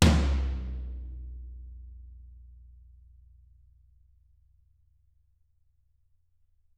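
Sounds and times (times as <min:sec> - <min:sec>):
tom drums: 0:00.0 - 0:01.3.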